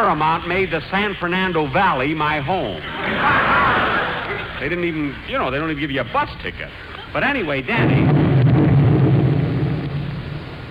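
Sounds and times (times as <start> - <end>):
speech: 0.0 - 3.8, 4.6 - 8.2
laughter: 2.8 - 5.3
deep heavy explosion rumble: 7.7 - 10.6.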